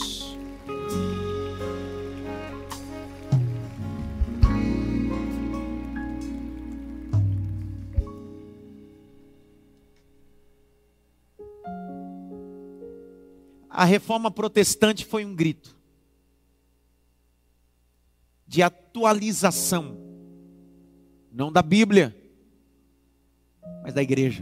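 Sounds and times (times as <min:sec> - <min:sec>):
audience applause: 0:00.0 - 0:07.9
speech: 0:13.8 - 0:15.8, 0:18.6 - 0:20.0, 0:21.3 - 0:22.2, 0:23.8 - 0:24.4.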